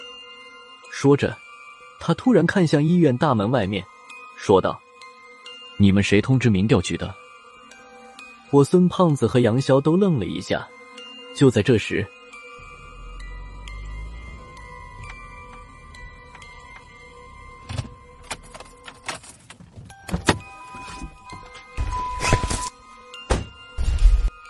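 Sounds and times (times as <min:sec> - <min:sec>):
speech: 0:01.0 - 0:01.4, 0:02.0 - 0:04.8, 0:05.8 - 0:07.2, 0:08.5 - 0:10.8, 0:11.4 - 0:12.2
cars pulling up at a gate: 0:12.6 - 0:22.1.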